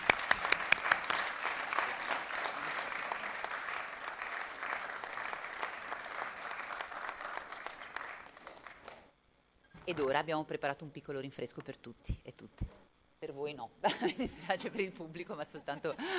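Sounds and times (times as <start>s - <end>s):
applause for a council member: 0.0s - 9.2s
speech: 9.9s - 16.1s.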